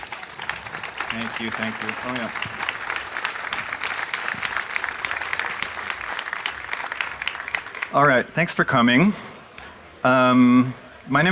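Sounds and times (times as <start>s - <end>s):
audience applause: 0.0s - 8.4s
speech: 1.1s - 2.8s, 7.9s - 9.3s, 10.0s - 11.3s.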